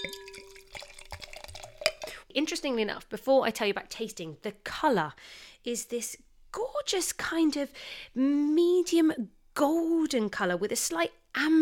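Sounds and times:
sparkling wine pouring into a glass: 0.0 - 2.2
speech: 2.4 - 11.5.

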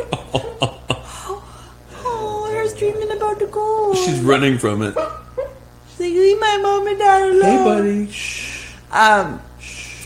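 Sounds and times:
dreaming dog whimpering: 1.9 - 5.6
speech: 3.6 - 5.1, 6.2 - 9.5.

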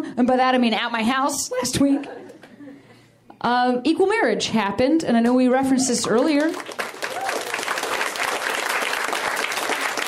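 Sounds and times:
speech: 0.0 - 2.4, 3.4 - 6.9
audience applause: 6.4 - 10.0.

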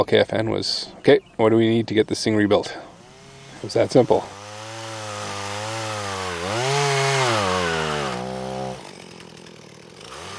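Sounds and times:
speech: 0.0 - 2.9, 3.6 - 4.4
chainsaw cutting wood: 2.8 - 10.3.

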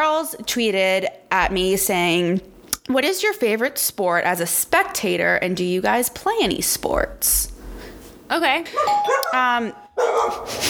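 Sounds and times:
speech: 0.0 - 7.5, 8.3 - 10.6
dog high whining yelp: 8.8 - 10.5
pet dog barking at a visitor at the door: 10.0 - 10.6.

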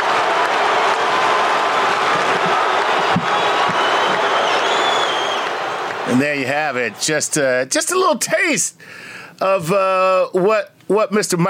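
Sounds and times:
basketball arena crowd cheering: 0.0 - 8.0
speech: 6.2 - 11.4.

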